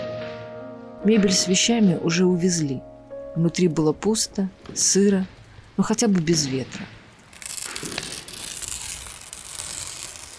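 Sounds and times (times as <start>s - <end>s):
speech: 1.0s - 7.0s
wallpaper being ripped off a wall: 7.2s - 10.3s.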